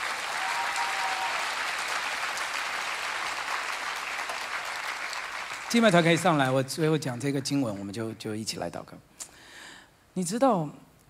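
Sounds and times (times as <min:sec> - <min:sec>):
audience clapping hands: 0:00.0 - 0:06.7
speech: 0:05.7 - 0:09.1, 0:10.2 - 0:10.8.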